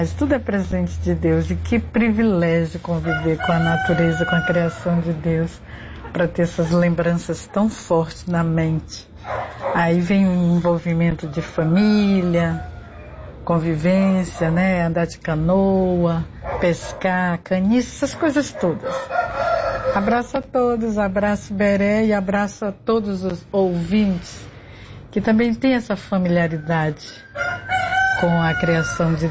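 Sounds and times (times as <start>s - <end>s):
speech: 0.0s - 12.7s, 13.5s - 19.2s, 19.9s - 24.5s, 25.1s - 29.3s
roosters crowing: 2.8s - 5.5s, 10.7s - 13.5s, 18.6s - 20.3s, 26.2s - 29.3s.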